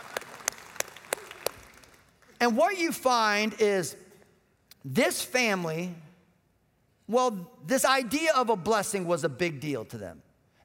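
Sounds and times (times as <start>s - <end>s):
audience applause: 0.0s - 2.4s
speech: 2.4s - 4.0s, 4.8s - 6.0s, 7.1s - 10.6s.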